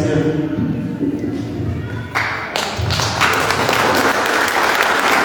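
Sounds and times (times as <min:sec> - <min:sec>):
low thumps: 0:00.1 - 0:02.0
audience applause: 0:02.1 - 0:05.2.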